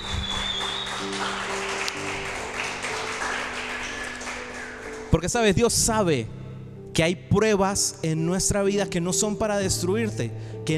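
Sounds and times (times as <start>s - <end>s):
audience applause: 0.0s - 5.2s
sustained low musical tones: 0.1s - 10.7s
speech: 5.1s - 6.4s, 7.0s - 10.7s.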